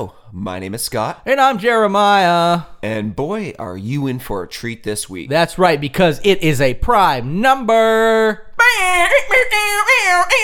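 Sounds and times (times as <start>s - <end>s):
speech: 0.0s - 10.4s
voice imitating an air horn: 8.6s - 10.4s.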